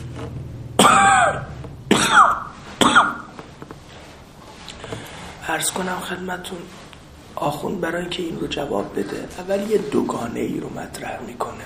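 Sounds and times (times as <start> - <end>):
man with a viral illness coughing harshly: 0.8 - 3.3
faint breathing: 4.7 - 5.4
speech: 5.6 - 6.8, 7.4 - 11.6.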